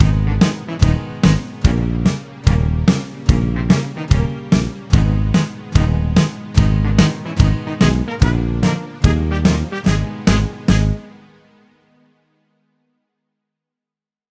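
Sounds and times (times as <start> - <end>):
instrumental dance music: 0.0 - 11.0.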